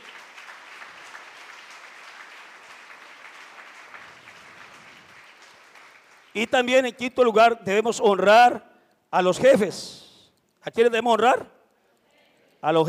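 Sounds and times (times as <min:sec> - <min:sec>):
audience applause: 0:00.0 - 0:06.4
speech: 0:06.4 - 0:10.0, 0:10.6 - 0:11.6, 0:12.6 - 0:12.8.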